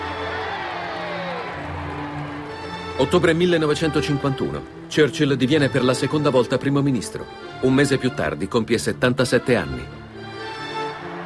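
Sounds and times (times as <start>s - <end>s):
crowd cheering for Winston Churchill with whoops: 0.0s - 2.8s, 10.6s - 11.2s
speech: 3.0s - 10.0s.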